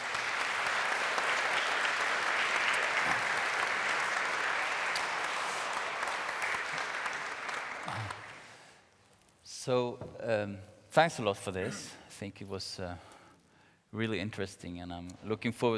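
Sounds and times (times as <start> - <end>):
audience applause: 0.0 - 8.6
speech: 9.7 - 13.1, 13.9 - 15.7.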